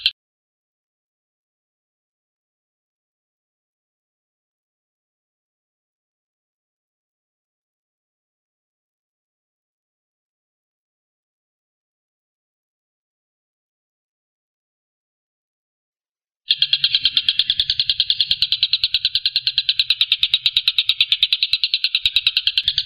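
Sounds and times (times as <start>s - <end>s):
Stork-billed kingfisher rattling: 16.5s - 22.8s.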